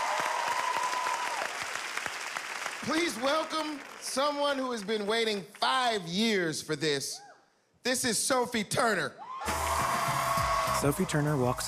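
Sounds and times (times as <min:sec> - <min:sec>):
audience applause at a live show: 0:00.0 - 0:05.0, 0:09.4 - 0:11.6
speech: 0:02.8 - 0:09.6, 0:10.8 - 0:11.6.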